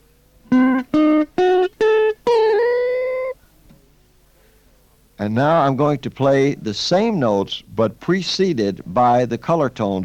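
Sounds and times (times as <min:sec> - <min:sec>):
arpeggiated C diminished chord notes: 0:00.5 - 0:03.4
speech: 0:05.2 - 0:10.0.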